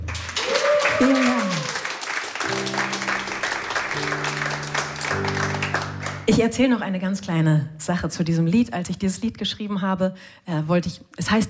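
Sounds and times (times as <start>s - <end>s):
studio audience applause: 0.0s - 6.3s
speech: 1.0s - 1.4s, 6.4s - 11.4s.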